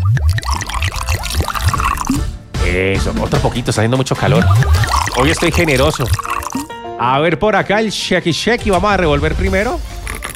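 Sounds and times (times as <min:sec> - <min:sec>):
drink poured over ice into a glass: 0:00.2 - 0:02.2, 0:04.8 - 0:06.7
speech: 0:02.8 - 0:06.2, 0:07.0 - 0:09.9.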